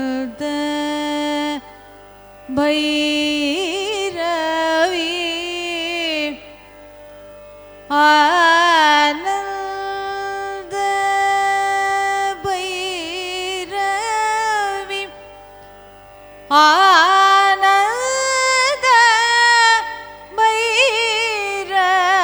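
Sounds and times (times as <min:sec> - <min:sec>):
Carnatic music raga: 0:00.0 - 0:22.2.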